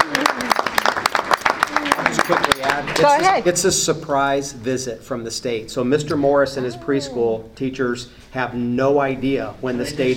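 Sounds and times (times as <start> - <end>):
small group clapping for a preschool program: 0.0 - 3.4
speech: 2.3 - 10.1.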